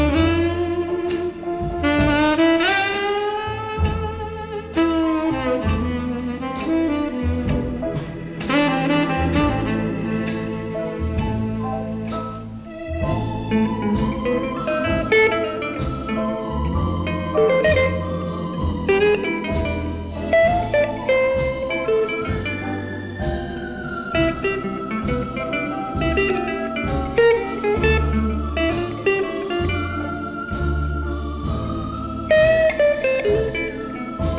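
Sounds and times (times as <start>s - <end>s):
blues saxophone: 0.0s - 34.3s.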